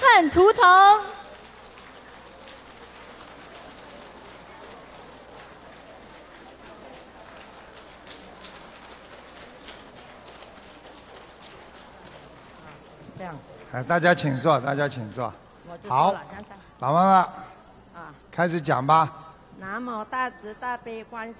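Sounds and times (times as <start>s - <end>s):
speech: 0.2s - 1.1s, 13.8s - 17.5s, 18.1s - 21.3s
audience applause: 0.5s - 14.4s.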